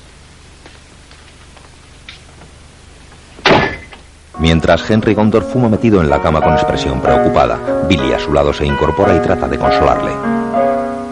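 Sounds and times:
door closing: 0:03.4 - 0:04.1
speech: 0:04.4 - 0:10.4.

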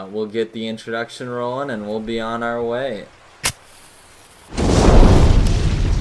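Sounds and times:
speech: 0:00.0 - 0:03.2
outdoor fire exploding while being lit: 0:04.5 - 0:05.9.

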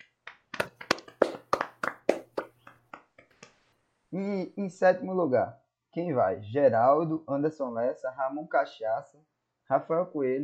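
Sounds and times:
crowd hand clapping: 0:00.6 - 0:02.8
speech: 0:04.1 - 0:10.4.

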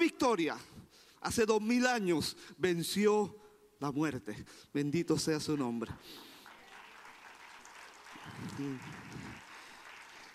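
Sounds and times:
speech: 0:00.2 - 0:06.3, 0:08.4 - 0:09.3
audience applause: 0:06.0 - 0:10.3.

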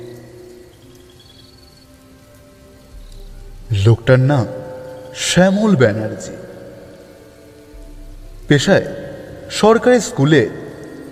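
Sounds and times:
faint sustained tones: 0:00.0 - 0:11.0
heavy rain falling at night: 0:00.0 - 0:11.0
speech: 0:03.7 - 0:04.6, 0:05.2 - 0:06.5, 0:08.5 - 0:10.6.

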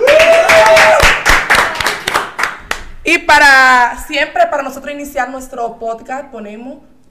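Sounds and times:
audience applause: 0:00.1 - 0:02.6
speech: 0:04.1 - 0:06.9.

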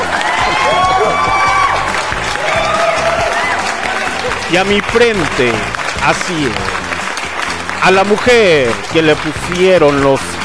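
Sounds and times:
cheering and high whoops: 0:00.0 - 0:04.4
crowd applauding loudly: 0:00.0 - 0:10.4
speech: 0:04.5 - 0:06.8, 0:07.8 - 0:10.4.

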